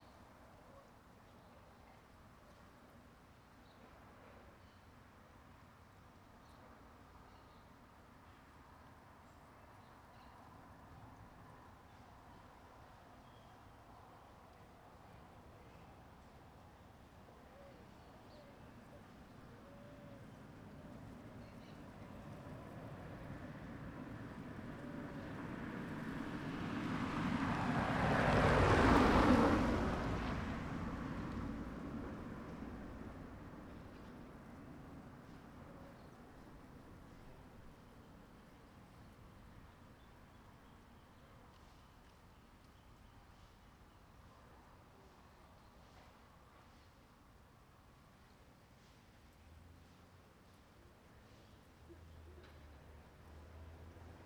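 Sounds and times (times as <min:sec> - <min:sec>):
gentle wind: 0:00.0 - 0:54.2
cars passing one after another: 0:20.2 - 0:37.4.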